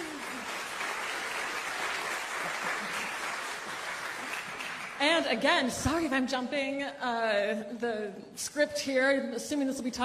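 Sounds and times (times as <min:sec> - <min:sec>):
audience applause: 0:00.0 - 0:05.0
speech: 0:05.2 - 0:10.0.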